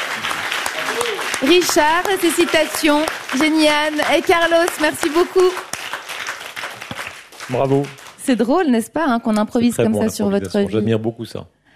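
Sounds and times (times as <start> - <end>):
audience applause: 0.0 - 8.3
speech: 1.4 - 5.7, 7.5 - 11.6.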